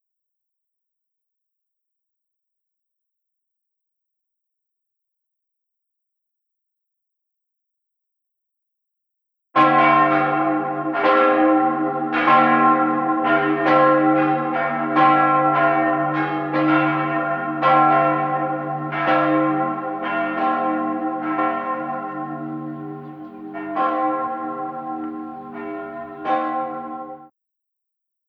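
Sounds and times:
bells ringing: 0:09.6 - 0:27.3.

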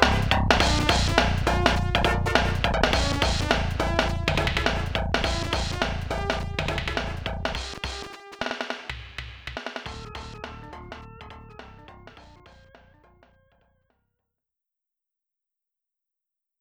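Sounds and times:
FM synth: 0:00.0 - 0:07.9, 0:09.9 - 0:13.4.

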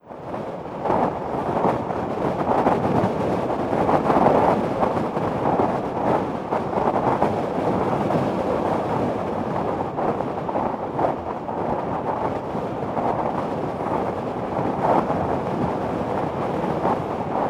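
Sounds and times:
city wind: 0:00.0 - 0:17.4.

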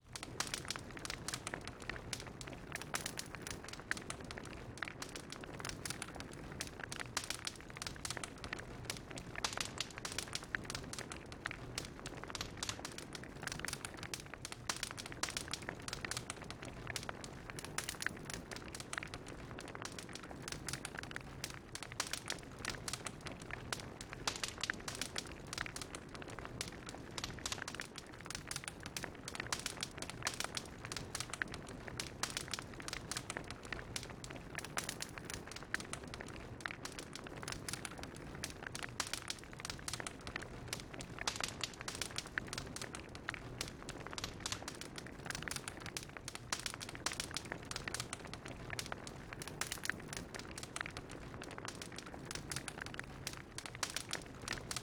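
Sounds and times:
bonfire: 0:00.0 - 0:54.8.

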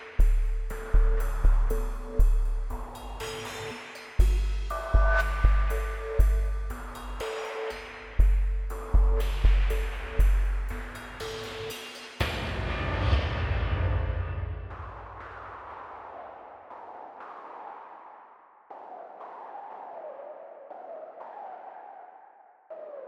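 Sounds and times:
drums: 0:00.0 - 0:18.0.

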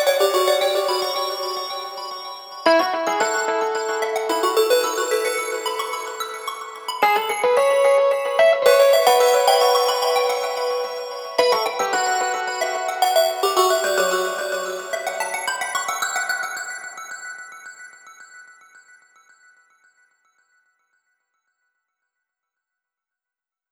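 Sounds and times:
synths at 110 bpm: 0:00.0 - 0:15.6.

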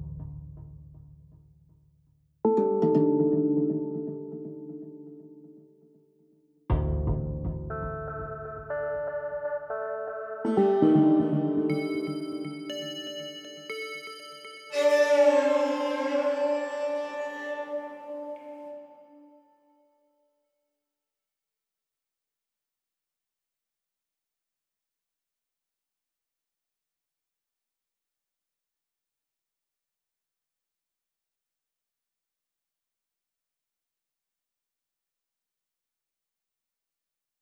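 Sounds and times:
synthesizers: 0:02.5 - 0:05.7, 0:07.7 - 0:19.2.

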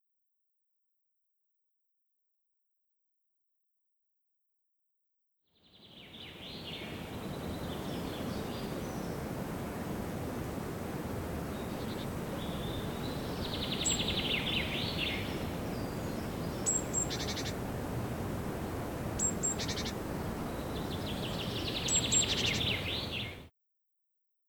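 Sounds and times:
forest birds at Devils Tower: 0:05.6 - 0:23.5.

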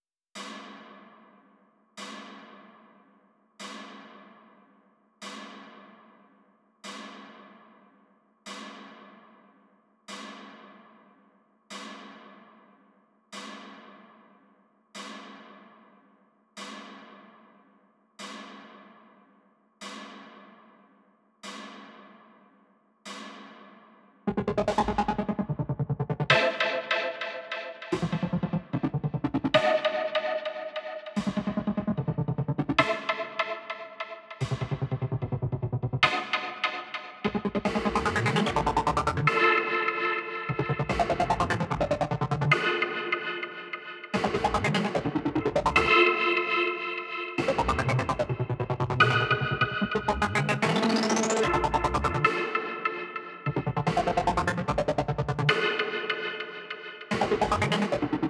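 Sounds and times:
synthesizer sounds: 0:24.3 - 0:43.4, 0:44.2 - 0:56.4, 0:57.1 - 0:58.2.

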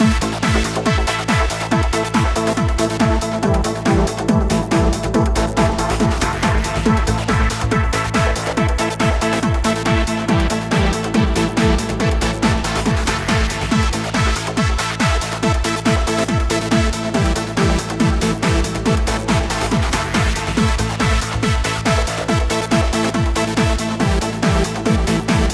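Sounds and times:
pre-match music: 0:00.0 - 0:25.5.

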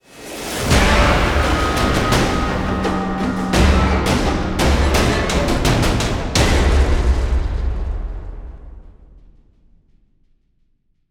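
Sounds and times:
musical stinger fill: 0:00.7 - 0:07.3.

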